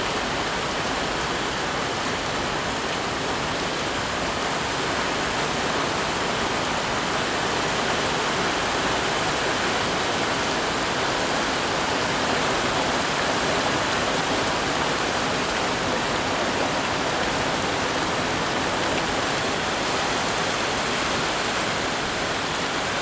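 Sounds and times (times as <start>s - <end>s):
torrential rain in a town: 0.0s - 22.9s.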